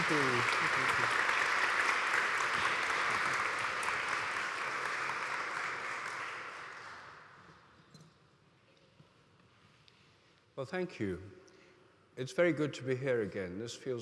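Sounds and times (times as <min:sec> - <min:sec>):
audience applause welcoming two speakers to the stage: 0:00.0 - 0:07.2
speech: 0:00.1 - 0:01.4, 0:10.6 - 0:11.5, 0:12.2 - 0:14.0.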